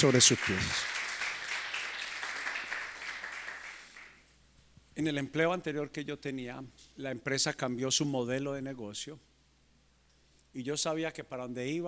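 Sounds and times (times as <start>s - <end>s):
speech: 0.0s - 1.0s, 5.0s - 9.3s, 10.6s - 11.8s
audience applause: 0.0s - 4.2s.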